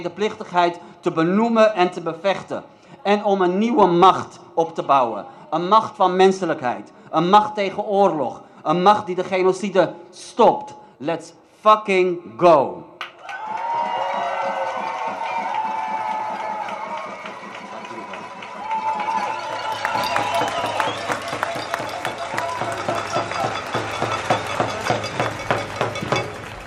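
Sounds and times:
speech: 0:00.0 - 0:13.0
crowd applause for a speaker at an event opposing war: 0:13.1 - 0:26.6.

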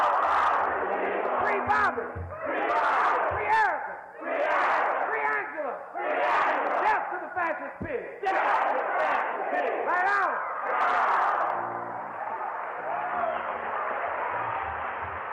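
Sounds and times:
crowd chanting slogan back in unison: 0:00.0 - 0:15.3.

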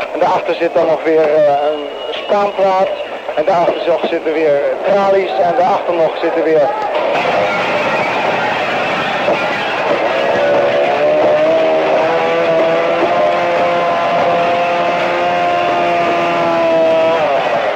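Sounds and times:
speech: 0:00.1 - 0:07.8
circular saw cutting into a door: 0:07.8 - 0:17.7.

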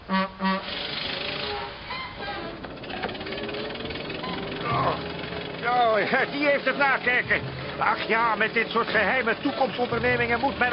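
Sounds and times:
car engine starting and driving off: 0:00.3 - 0:10.7
speech: 0:06.0 - 0:10.7.

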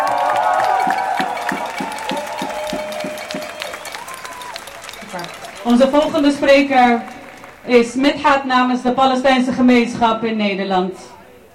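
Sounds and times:
crowd applause and cheering: 0:00.0 - 0:08.4
speech: 0:05.7 - 0:07.1, 0:07.7 - 0:11.1.

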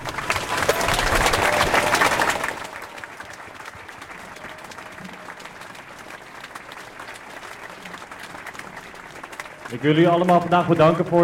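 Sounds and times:
audience applause for speakers: 0:00.0 - 0:11.2
speech: 0:09.8 - 0:11.2.

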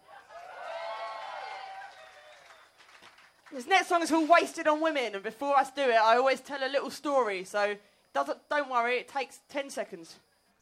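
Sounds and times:
crowd cheering and whooping: 0:00.0 - 0:03.2
audience applause: 0:00.0 - 0:03.6
speech: 0:03.5 - 0:10.3.

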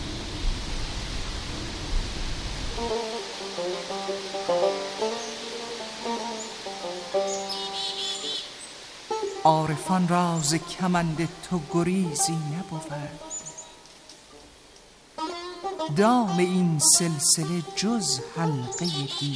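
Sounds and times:
wind blowing: 0:00.0 - 0:15.2
speech: 0:09.4 - 0:13.3, 0:15.9 - 0:19.3.

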